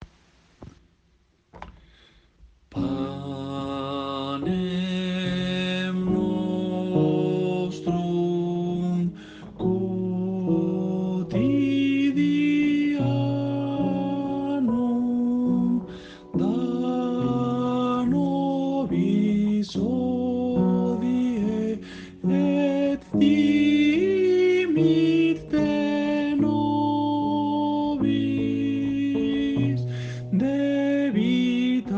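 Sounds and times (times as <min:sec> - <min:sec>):
soprano voices singing: 0:02.8 - 0:31.9.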